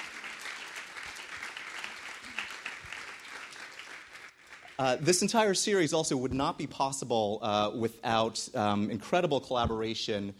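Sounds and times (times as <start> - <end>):
audience clapping: 0.0 - 5.5
speech: 4.8 - 10.3.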